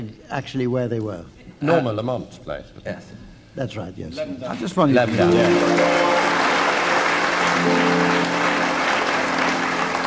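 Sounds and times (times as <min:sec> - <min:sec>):
speech: 0:00.0 - 0:06.4
sparse audience applause: 0:05.0 - 0:10.0.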